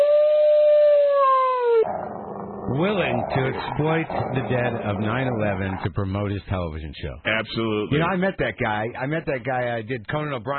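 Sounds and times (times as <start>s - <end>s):
dog howl sound effect: 0.0s - 4.9s
speech: 2.7s - 10.5s.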